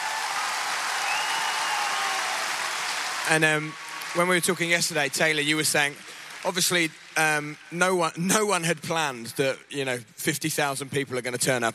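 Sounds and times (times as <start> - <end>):
audience clapping: 0.0 - 8.2
speech: 3.3 - 11.7.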